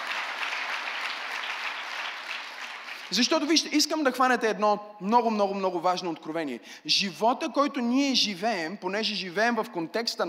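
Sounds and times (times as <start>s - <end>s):
audience applauding: 0.0s - 3.4s
speech: 3.1s - 10.2s.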